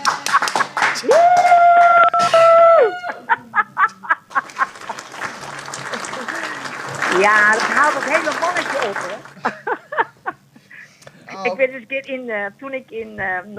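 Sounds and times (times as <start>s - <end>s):
laughter: 0.0s - 1.2s, 1.9s - 10.5s
applause: 0.0s - 2.0s, 4.3s - 9.6s
speech: 7.2s - 9.6s, 11.4s - 13.5s.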